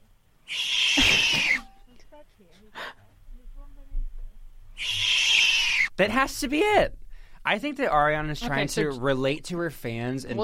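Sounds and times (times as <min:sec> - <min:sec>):
gopher screaming in a viral video: 0:00.5 - 0:01.7, 0:04.8 - 0:06.0
speech: 0:06.0 - 0:10.4.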